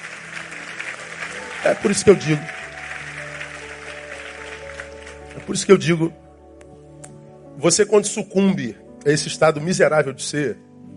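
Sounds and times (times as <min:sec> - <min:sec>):
audience applause: 0:00.0 - 0:05.9
speech: 0:01.6 - 0:02.6, 0:05.5 - 0:06.2, 0:07.6 - 0:10.7.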